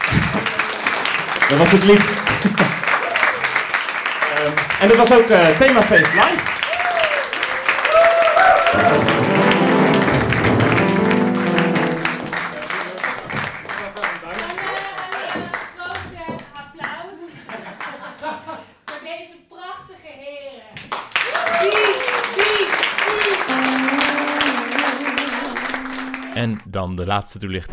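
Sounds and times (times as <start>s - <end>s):
audience applause and clapping: 0.0s - 15.7s, 21.0s - 26.6s
speech: 1.5s - 2.8s, 4.4s - 6.5s, 26.8s - 27.7s.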